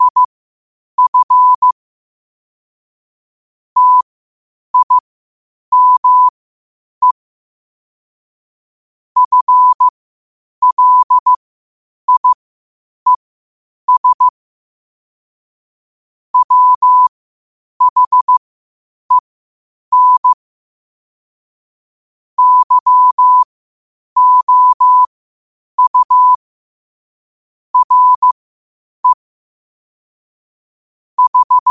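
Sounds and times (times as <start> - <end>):
morse code at 5 wpm: 0.0 - 0.3, 1.0 - 1.8, 3.8 - 4.1, 4.8 - 5.0, 5.7 - 6.3, 9.2 - 9.9, 10.6 - 11.4, 12.1 - 12.4, 13.9 - 14.3, 16.4 - 17.1, 17.8 - 18.4, 19.9 - 20.4, 22.4 - 23.5, 24.2 - 25.1, 25.8 - 26.4, 27.8 - 28.4, 31.2 - 31.6.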